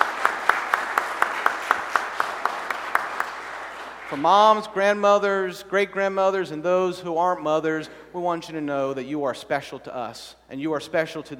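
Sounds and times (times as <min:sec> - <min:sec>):
audience clapping: 0:00.0 - 0:04.7
speech: 0:04.1 - 0:11.3.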